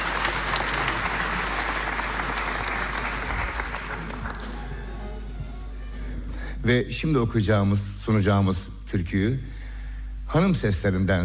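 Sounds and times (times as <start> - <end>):
audience applause at a Turkish folk song concert: 0.0 - 5.2
speech: 6.6 - 9.6, 10.3 - 11.2.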